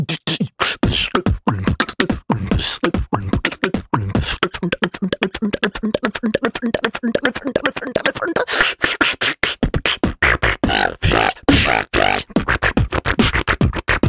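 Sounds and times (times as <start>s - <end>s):
person beatboxing: 0.0s - 14.0s.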